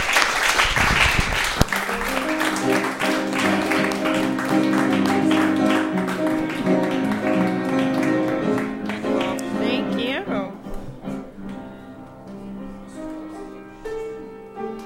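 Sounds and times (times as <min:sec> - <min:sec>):
audience clapping: 0:00.0 - 0:10.2
sustained piano notes: 0:01.5 - 0:14.8.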